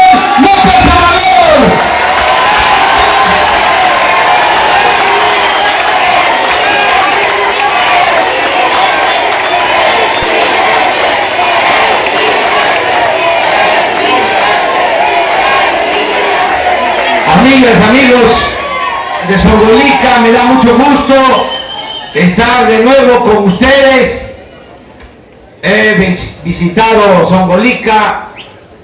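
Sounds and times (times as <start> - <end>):
large crowd cheering and applauding: 0.0 - 22.2
speech: 17.6 - 18.5, 19.3 - 21.5, 22.1 - 24.2, 25.6 - 28.2.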